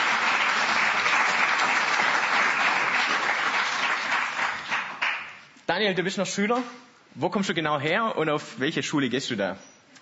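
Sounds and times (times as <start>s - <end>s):
audience applause: 0.0s - 5.4s
speech: 5.8s - 9.7s.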